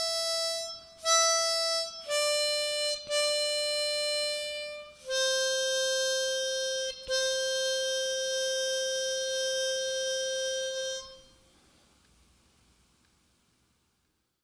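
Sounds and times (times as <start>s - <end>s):
bagpipe playing sight-reading exercises: 0.0s - 11.4s.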